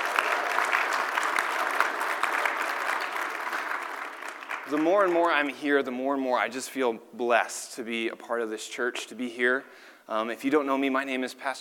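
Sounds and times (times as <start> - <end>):
audience applause: 0.0 - 5.5
speech: 4.7 - 11.6.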